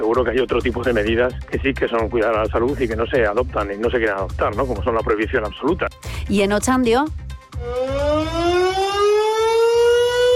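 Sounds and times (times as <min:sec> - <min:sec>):
speech: 0:00.1 - 0:08.5
air raid sirens wailing during a bombing anniversary commemoration: 0:07.6 - 0:10.3.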